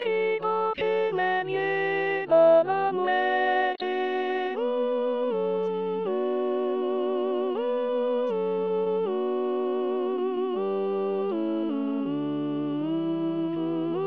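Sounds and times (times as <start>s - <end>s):
alto choristers singing: 0.0s - 13.9s.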